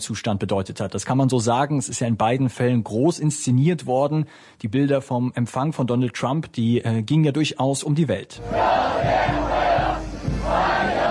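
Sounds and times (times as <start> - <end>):
speech: 0.0 - 11.0
dozens of young Chinese people chanting a welcome on an airport runway in Beijing: 8.4 - 11.0.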